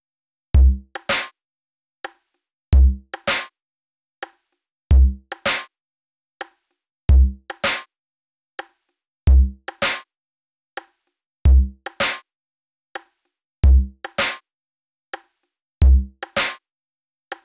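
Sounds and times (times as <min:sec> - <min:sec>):
drums: 0:00.6 - 0:01.3, 0:02.8 - 0:03.5, 0:04.2 - 0:05.7, 0:06.4 - 0:07.9, 0:08.6 - 0:10.0, 0:11.5 - 0:12.2, 0:13.0 - 0:14.4, 0:15.2 - 0:16.6.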